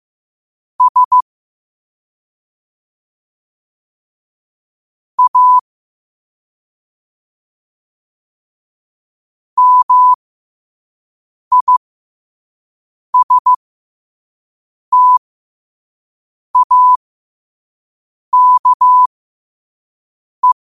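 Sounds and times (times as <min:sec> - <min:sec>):
morse code at 5 wpm: 0:00.8 - 0:01.2, 0:05.2 - 0:05.6, 0:09.6 - 0:10.2, 0:11.5 - 0:11.8, 0:13.2 - 0:13.6, 0:14.9 - 0:15.2, 0:16.6 - 0:17.0, 0:18.4 - 0:19.1.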